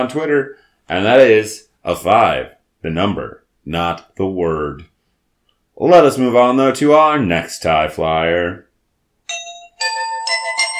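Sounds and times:
speech: 0.0 - 4.9, 5.8 - 8.6
bell chime cueing a listener-questions segment: 9.3 - 10.7.

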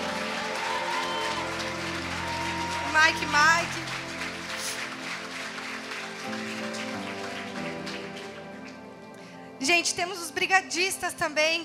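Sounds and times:
audience applause: 0.0 - 8.9
speech: 3.1 - 4.0, 9.6 - 11.6.

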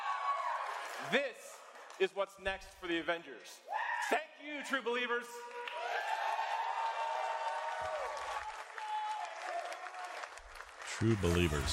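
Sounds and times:
high whoops: 0.0 - 0.9, 3.6 - 4.1, 5.4 - 10.3
riled-up crowd cheering and applauding: 0.0 - 2.0, 5.4 - 11.7
speech: 1.0 - 5.6, 11.0 - 11.7.

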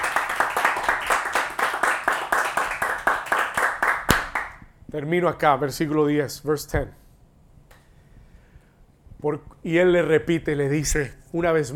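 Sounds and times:
audience clapping in rhythm: 0.0 - 4.7
speech: 4.9 - 7.0, 9.2 - 11.7.

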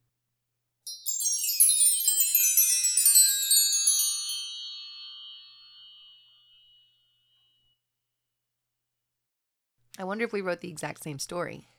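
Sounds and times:
distant wind chime: 0.9 - 7.6
speech: 10.0 - 11.7.

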